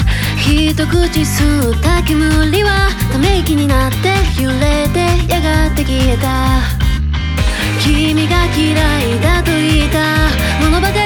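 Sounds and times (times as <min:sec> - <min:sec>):
bass: 0:00.0 - 0:11.0.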